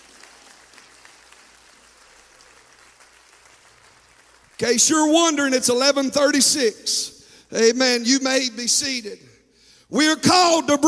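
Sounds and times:
audience clapping hands: 0.0 - 5.1
speech: 4.6 - 10.8.

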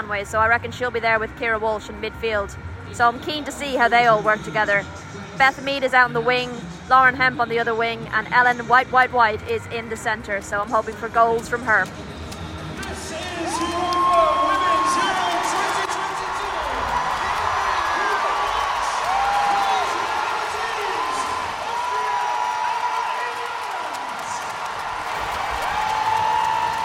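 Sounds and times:
speech: 0.1 - 12.1
stadium crowd roaring: 12.8 - 26.8
scattered whistles and whoops: 13.3 - 23.2, 25.5 - 26.8.

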